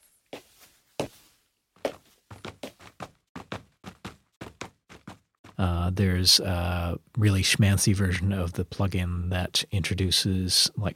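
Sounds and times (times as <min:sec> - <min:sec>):
footsteps of various types of shoe on different surfaces: 0:00.0 - 0:05.7
speech: 0:05.6 - 0:10.9.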